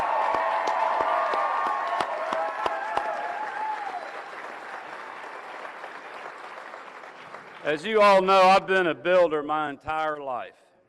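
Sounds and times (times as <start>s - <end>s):
faint cheering: 0.0s - 4.3s
audience clapping: 0.0s - 8.7s
speech: 7.7s - 10.6s.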